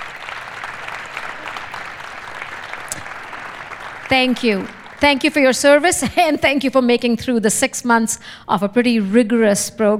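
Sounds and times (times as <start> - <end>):
audience round of applause: 0.0 - 5.9
speech: 4.1 - 9.9.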